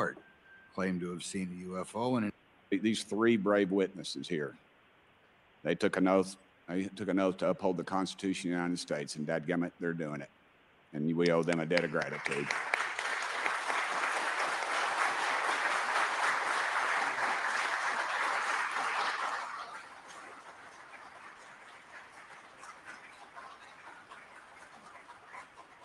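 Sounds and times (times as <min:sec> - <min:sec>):
speech: 0:00.0 - 0:00.2, 0:00.8 - 0:04.6, 0:05.6 - 0:12.9
crowd applause: 0:11.4 - 0:25.8.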